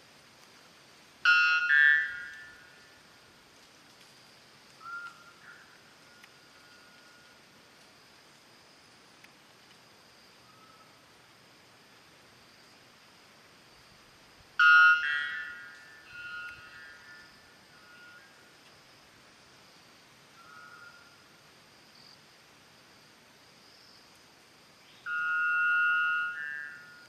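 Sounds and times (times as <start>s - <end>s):
white bellbird: 1.3s - 2.9s, 4.8s - 7.3s, 14.6s - 18.4s, 24.9s - 27.0s.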